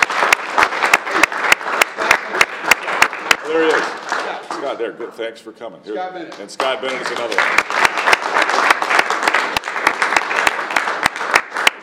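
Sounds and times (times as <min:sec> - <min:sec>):
audience applause: 0:00.0 - 0:04.8, 0:06.6 - 0:11.8
speech: 0:04.8 - 0:07.9.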